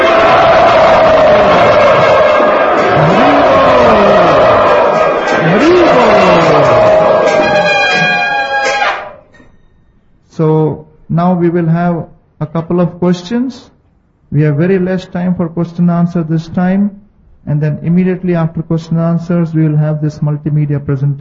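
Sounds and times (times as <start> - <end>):
crowd of devotees chanting loudly together: 0.0 - 8.3
speech: 11.3 - 13.7, 14.3 - 21.1.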